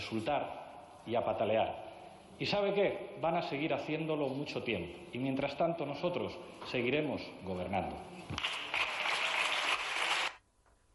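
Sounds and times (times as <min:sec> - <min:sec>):
speech: 0:00.1 - 0:08.5
applause in parliament chamber: 0:08.4 - 0:10.4.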